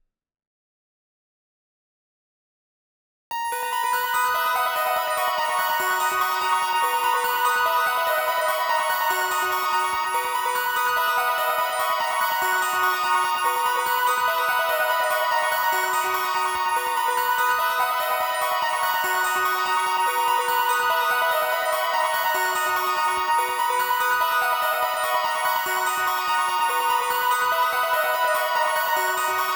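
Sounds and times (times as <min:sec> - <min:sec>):
bell: 0:03.3 - 0:29.5.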